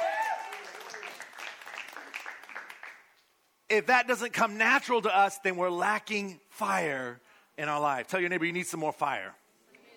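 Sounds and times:
crowd cheering: 0:00.0 - 0:02.8
crowd clapping: 0:00.0 - 0:03.3
speech: 0:03.7 - 0:09.4.

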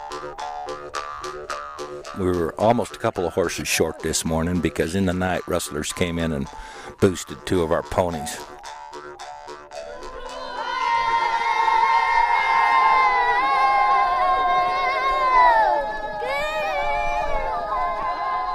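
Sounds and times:
speech: 0:02.2 - 0:08.6
children riders chanting an encouraging song: 0:10.1 - 0:18.5.

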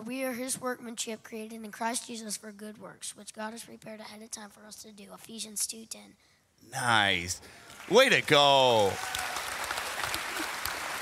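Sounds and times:
speech: 0:00.1 - 0:09.3
audience clapping: 0:07.6 - 0:11.0.

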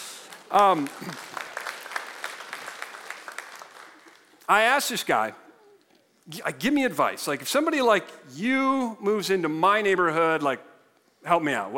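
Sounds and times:
audience clapping: 0:00.0 - 0:05.2
speech: 0:00.5 - 0:01.4, 0:04.5 - 0:05.4, 0:06.3 - 0:11.7.

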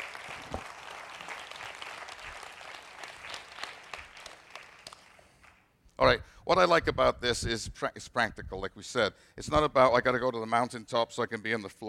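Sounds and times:
crowd applause: 0:00.0 - 0:05.7
speech: 0:06.0 - 0:11.8.

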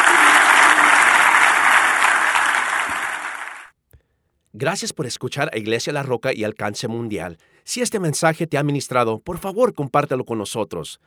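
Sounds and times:
audience applause: 0:00.0 - 0:03.7
speech: 0:04.6 - 0:11.0.

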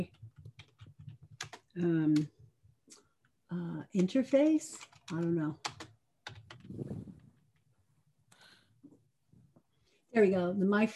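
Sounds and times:
typing on a computer keyboard into a web browser: 0:00.0 - 0:02.4, 0:04.0 - 0:07.6
speech: 0:01.8 - 0:02.4, 0:03.9 - 0:05.7, 0:10.2 - 0:10.9.

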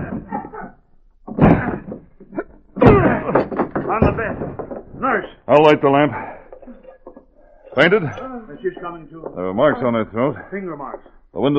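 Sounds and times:
heavy thuds against a locked door being broken in: 0:01.3 - 0:02.1, 0:02.8 - 0:05.1
murmuring voices: 0:01.4 - 0:11.5
knock on door: 0:02.8 - 0:05.0
speech: 0:05.6 - 0:06.3, 0:07.8 - 0:11.5.

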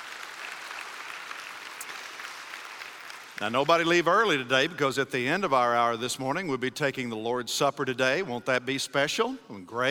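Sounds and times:
church congregation applauding during a morning service: 0:00.0 - 0:04.5
speech: 0:03.4 - 0:09.8.

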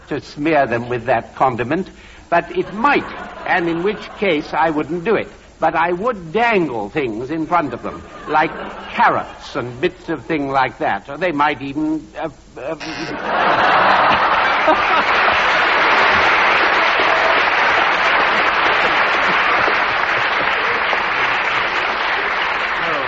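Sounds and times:
speech: 0:00.1 - 0:14.0, 0:14.6 - 0:15.3
laughter: 0:02.4 - 0:04.9, 0:07.5 - 0:09.8, 0:12.8 - 0:23.0
sustained audience applause: 0:13.1 - 0:23.0.

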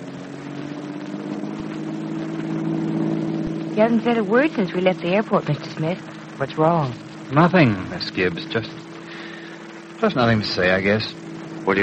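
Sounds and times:
car engine drone while driving: 0:00.0 - 0:11.8
rushing road noise: 0:00.0 - 0:11.8
speech: 0:03.8 - 0:08.8, 0:10.0 - 0:11.8.

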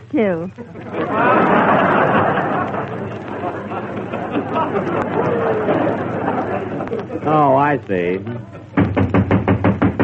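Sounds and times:
speech: 0:00.1 - 0:01.6, 0:07.2 - 0:08.7
laughter: 0:00.6 - 0:08.8
knocking on a door: 0:08.8 - 0:10.0.

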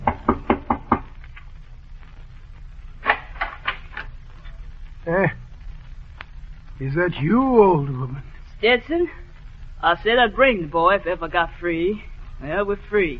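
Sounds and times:
knocking on a cabin door: 0:00.0 - 0:01.1
speech: 0:05.1 - 0:05.4, 0:06.8 - 0:13.1.

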